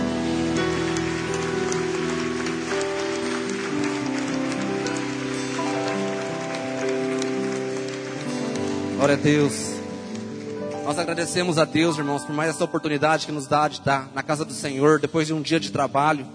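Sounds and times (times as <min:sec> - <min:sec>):
audience applause: 0:00.0 - 0:12.0
speech: 0:09.0 - 0:09.8, 0:10.9 - 0:16.3.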